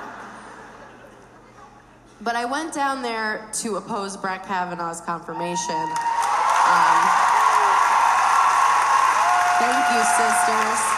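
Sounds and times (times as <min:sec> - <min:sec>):
speech: 0:02.2 - 0:07.3, 0:09.6 - 0:10.9
faint cheer or whoop: 0:05.4 - 0:10.9
audience applause: 0:05.9 - 0:10.9.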